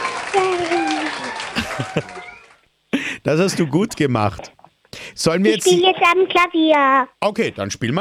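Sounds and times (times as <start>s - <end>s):
applause: 0.0s - 2.6s
laughter: 0.0s - 3.7s
speech: 1.9s - 2.2s, 3.3s - 4.6s, 5.2s - 7.9s.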